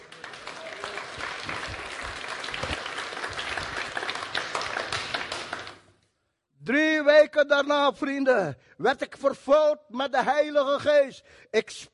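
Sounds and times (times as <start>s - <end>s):
audience applause: 0.0s - 5.9s
speech: 6.7s - 11.9s.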